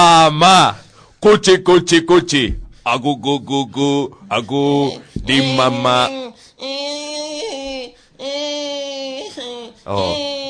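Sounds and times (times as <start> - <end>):
speech: 0.3 - 6.9, 9.9 - 10.2
baby crying: 4.8 - 10.4.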